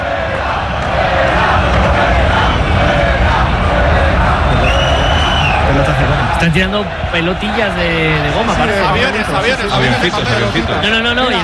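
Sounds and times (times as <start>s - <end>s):
football stadium crowd chanting: 0.0s - 11.4s
speech: 6.5s - 11.4s.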